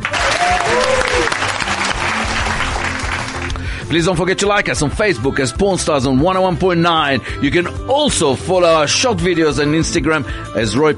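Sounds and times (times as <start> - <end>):
whistles or cheers: 0.0 - 1.6
round of applause from a small group: 0.0 - 3.9
speech: 3.9 - 10.9.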